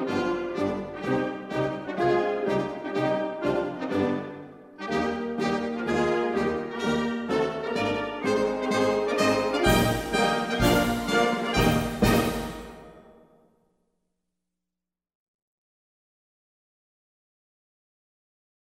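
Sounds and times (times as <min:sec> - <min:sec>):
national anthem: 0:00.0 - 0:13.1.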